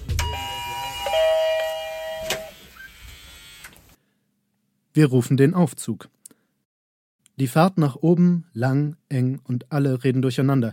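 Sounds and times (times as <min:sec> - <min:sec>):
electric door opener buzzing: 0:00.1 - 0:04.0
speech: 0:05.0 - 0:06.2, 0:07.4 - 0:10.7.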